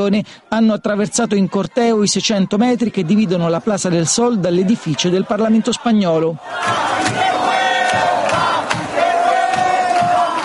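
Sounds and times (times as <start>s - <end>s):
speech: 0.0s - 8.4s
protesters shouting: 1.2s - 10.4s.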